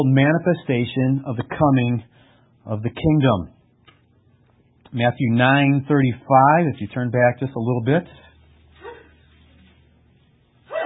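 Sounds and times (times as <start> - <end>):
speech: 0.0 - 3.6, 4.9 - 8.3
sneeze: 8.8 - 9.2, 10.7 - 10.8.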